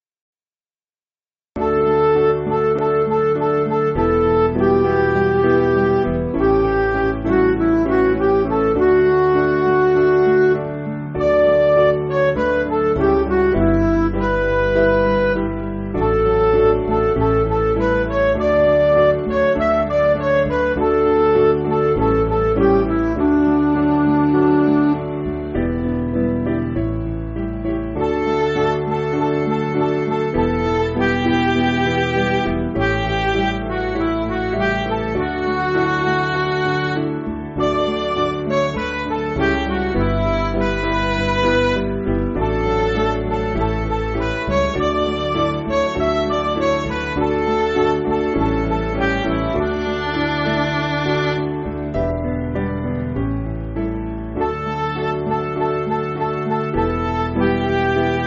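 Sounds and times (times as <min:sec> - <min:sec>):
MIDI backing music: 0:01.6 - 0:58.2.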